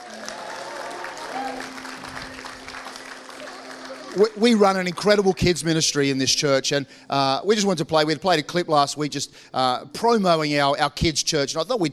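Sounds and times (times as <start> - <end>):
congregation clapping in church to welcome the kids: 0.0 - 6.1
speech: 1.4 - 1.8, 4.2 - 11.9.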